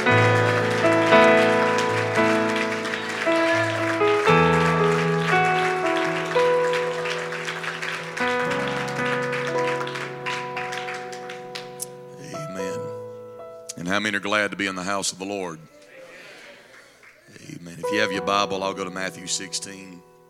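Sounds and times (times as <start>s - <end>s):
audience clapping hands: 0.0s - 12.1s, 16.4s - 18.3s
speech: 14.0s - 15.8s, 17.9s - 20.1s.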